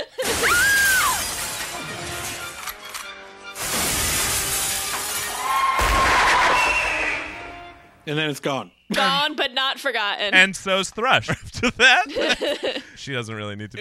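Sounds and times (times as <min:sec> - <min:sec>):
window glass shattering: 0:00.2 - 0:02.9, 0:03.5 - 0:07.0
speech: 0:08.1 - 0:13.7
laughter: 0:11.2 - 0:13.0.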